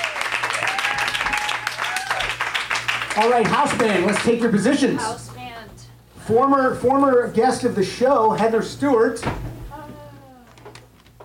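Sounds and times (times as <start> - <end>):
round of applause: 0.0 - 4.4
speech: 3.2 - 5.3, 6.3 - 9.4.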